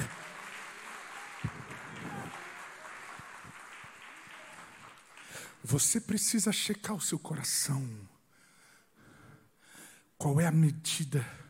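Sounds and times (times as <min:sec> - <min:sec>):
audience applause: 0:00.0 - 0:05.7
speech: 0:05.7 - 0:08.1, 0:10.2 - 0:11.4.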